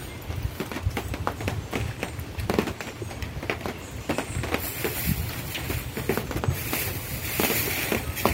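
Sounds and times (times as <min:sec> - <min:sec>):
outdoor ambience above the forests near Ramsar: 0:00.0 - 0:08.3.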